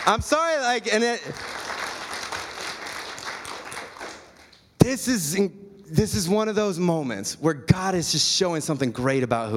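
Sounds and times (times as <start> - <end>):
speech: 0.0 - 1.6, 4.8 - 9.5
audience clapping: 0.0 - 4.8.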